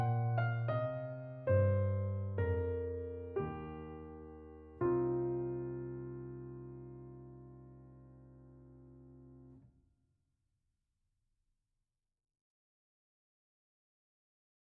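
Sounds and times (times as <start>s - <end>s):
piano: 0.0s - 9.7s.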